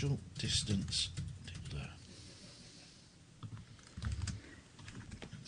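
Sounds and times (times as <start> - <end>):
speech: 0.0 - 2.0
typing on a computer keyboard: 0.4 - 1.9, 3.4 - 5.3.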